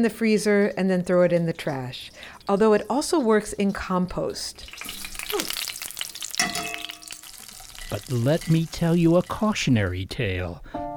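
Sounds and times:
speech: 0.0s - 5.6s, 7.9s - 10.8s
grease frying in a pan: 2.2s - 10.0s.

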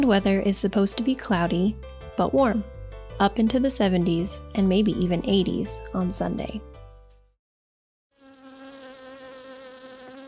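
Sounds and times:
speech: 0.0s - 6.7s
honeybees buzzing as they forage in warm weather: 8.2s - 10.2s.

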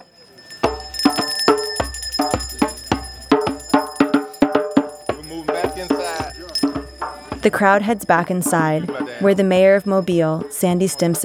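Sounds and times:
drum beats with deep thumps and metallic overtones: 0.0s - 11.2s
speech: 7.4s - 11.2s.

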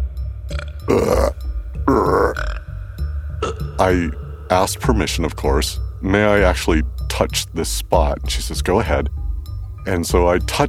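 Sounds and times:
person burping: 0.5s - 2.8s, 3.4s - 3.9s
low rumble: 1.4s - 10.6s
speech: 3.8s - 9.2s, 9.8s - 10.6s.

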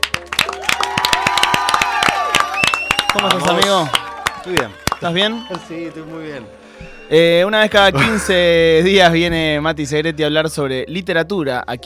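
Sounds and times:
crowd clapping: 0.0s - 6.6s
voices cheering and whooping: 0.4s - 6.4s
speech: 3.1s - 11.8s
laughter: 7.9s - 8.6s.

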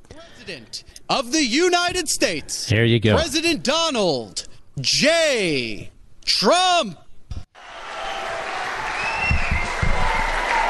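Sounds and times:
speech: 0.2s - 7.0s
rally crowd applauding: 7.6s - 10.6s
whistles and shouts: 8.9s - 10.3s.

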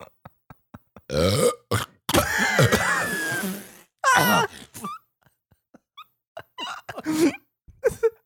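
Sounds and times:
loud drawn-out burp after drinking soda: 1.1s - 4.4s.

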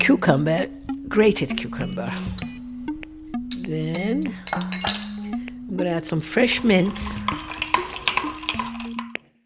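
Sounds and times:
speech: 0.0s - 2.5s, 3.7s - 5.1s, 5.7s - 7.5s
ice clinking while stirring Persian sharbat with cucumber and mint: 6.6s - 9.2s.

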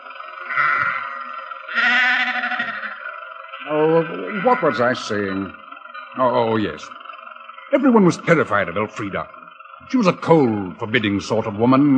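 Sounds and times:
sheep bleating on the road: 0.4s - 5.6s
speech: 3.6s - 7.0s, 7.7s - 11.9s.

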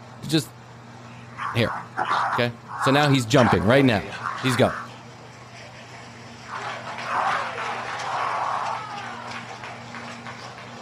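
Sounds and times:
speech: 0.3s - 0.6s, 1.5s - 4.8s
people clapping: 5.9s - 10.7s.

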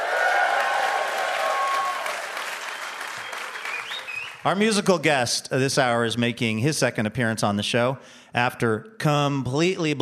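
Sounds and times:
theater audience applause: 0.0s - 4.4s
speech: 4.4s - 9.9s.

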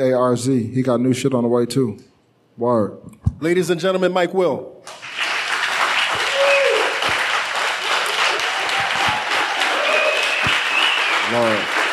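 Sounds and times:
speech: 0.0s - 5.0s, 11.3s - 11.7s
audience applause: 4.9s - 11.9s.

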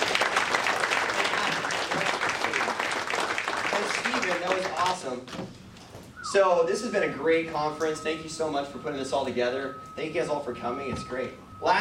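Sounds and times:
audience applause: 0.0s - 5.0s
speech: 6.3s - 11.7s.

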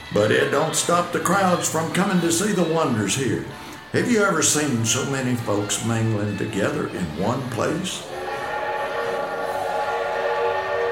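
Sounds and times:
speech: 0.1s - 8.2s
Corliss steam engine running: 8.0s - 10.8s.

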